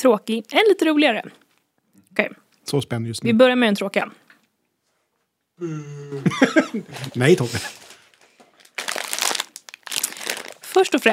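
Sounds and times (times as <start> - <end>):
speech: 0.0 - 1.4, 2.2 - 4.2, 5.6 - 7.8, 10.8 - 11.1
laughter: 5.6 - 7.8
crinkly packaging rustling: 6.9 - 11.1.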